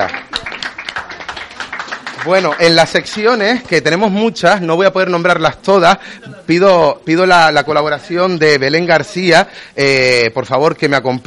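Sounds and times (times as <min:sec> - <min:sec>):
audience applause: 0:00.0 - 0:03.7
speech: 0:02.2 - 0:11.2.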